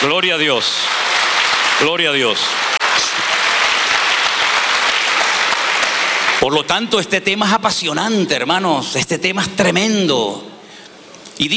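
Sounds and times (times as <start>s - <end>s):
speech: 0.0s - 1.1s, 1.8s - 2.7s, 6.4s - 10.5s, 11.4s - 11.5s
audience applause: 0.0s - 6.5s.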